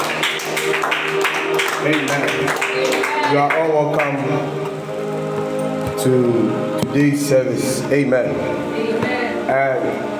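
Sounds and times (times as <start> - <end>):
audience clapping: 0.0 - 5.6
speech: 1.8 - 4.8, 6.0 - 10.1.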